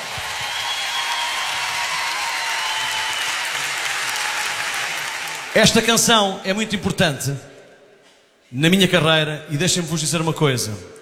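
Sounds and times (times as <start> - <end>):
audience applause: 0.0 - 5.8
speech: 5.6 - 7.5, 8.5 - 11.0.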